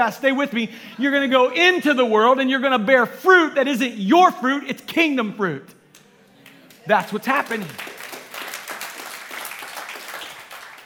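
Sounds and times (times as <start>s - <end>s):
speech: 0.0s - 5.8s, 6.9s - 7.8s
audience clapping: 6.0s - 10.8s.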